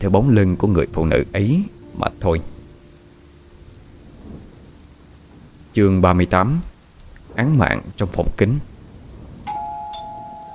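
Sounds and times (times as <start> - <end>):
speech: 0.0 - 2.5, 5.8 - 6.7, 7.4 - 8.7
doorbell ringing: 9.5 - 10.5.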